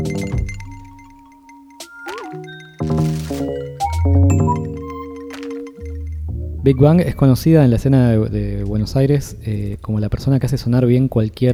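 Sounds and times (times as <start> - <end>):
sparse clean synth tones with quick pitch bends: 0.0 - 8.6
Radio Caso station jingle music: 0.0 - 11.5
crisp clicks: 0.1 - 6.3
speech: 6.6 - 11.5.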